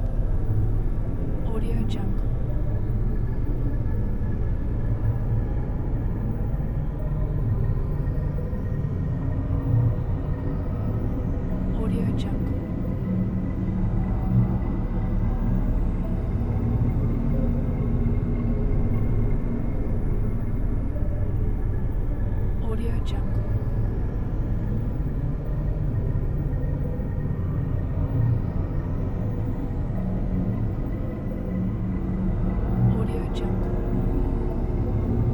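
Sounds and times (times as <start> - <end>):
deep suspenseful background ambiance: 0.0 - 35.3.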